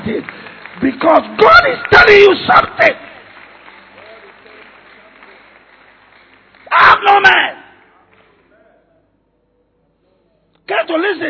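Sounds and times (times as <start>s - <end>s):
speech: 0.0s - 3.1s
audience clapping: 0.0s - 8.6s.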